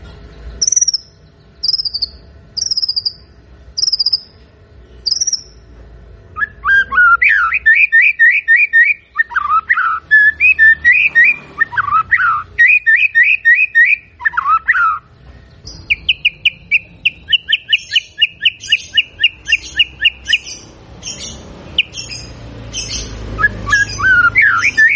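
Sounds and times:
White-rumped shama singing whistles: 0.6 - 4.4, 5.0 - 5.6, 6.4 - 15.1, 15.7 - 20.5, 23.4 - 24.9.

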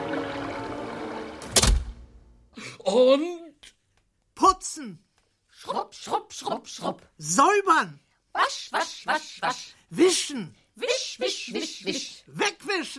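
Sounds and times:
window slamming shut thud: 1.4 - 2.1
speech: 2.9 - 3.4, 4.8 - 5.1, 6.0 - 12.9.

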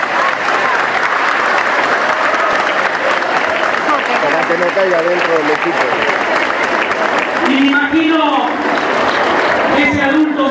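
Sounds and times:
crowd applause at a public event in Argentina: 0.0 - 10.4
speech: 4.5 - 6.4, 7.4 - 8.9, 9.7 - 10.4.

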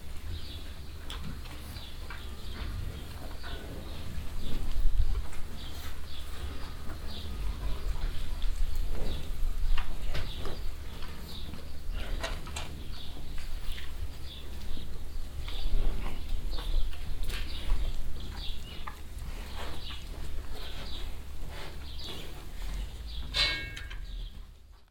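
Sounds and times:
cows eating at a trough in a cowshed: 0.0 - 24.8.

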